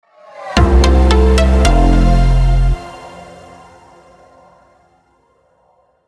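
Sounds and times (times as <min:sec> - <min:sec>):
jeweller sound logo jingle: 0:00.6 - 0:04.1.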